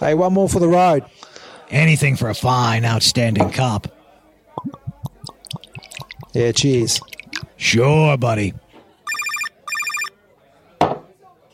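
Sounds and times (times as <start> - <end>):
speech: 0.0 - 4.0, 6.3 - 8.6
telephone ringing: 9.1 - 10.1.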